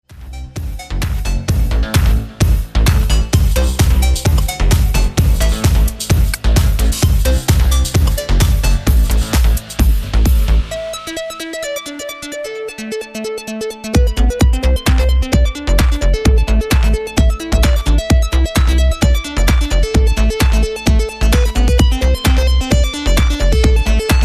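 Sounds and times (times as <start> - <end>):
dance music: 0.0 - 24.2.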